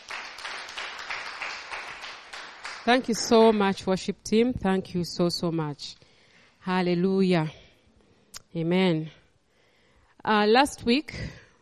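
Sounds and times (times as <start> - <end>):
congregation clapping for the worship team: 0.0 - 3.3
speech: 2.8 - 6.0, 6.6 - 7.6, 8.5 - 9.2, 10.2 - 11.4.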